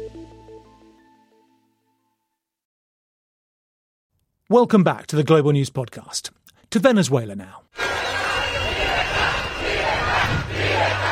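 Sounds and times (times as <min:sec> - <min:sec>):
speech: 0:04.5 - 0:08.0
opposition supporters chanting freedom on the streets of Caracas: 0:07.7 - 0:11.0.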